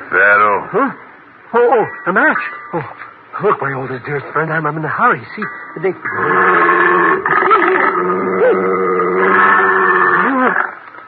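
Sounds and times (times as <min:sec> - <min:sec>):
speech: 0:00.1 - 0:09.8
bloodhound baying: 0:06.1 - 0:09.4.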